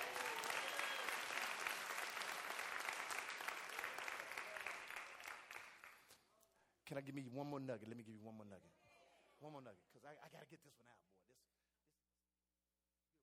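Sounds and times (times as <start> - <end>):
audience clapping: 0.0 - 6.2
speech: 6.9 - 8.8, 9.4 - 11.6.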